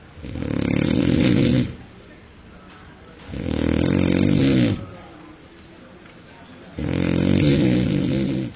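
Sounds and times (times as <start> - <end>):
quiet breathing: 0.0 - 8.5
loud human snoring: 0.1 - 1.8, 3.2 - 5.0, 6.7 - 8.5.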